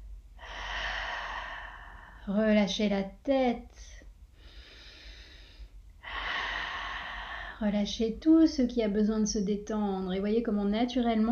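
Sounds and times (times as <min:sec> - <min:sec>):
deep exhalations during a guided relaxation breathing exercise: 0:00.4 - 0:02.3, 0:04.4 - 0:07.6
speech: 0:02.3 - 0:04.0, 0:07.6 - 0:11.2.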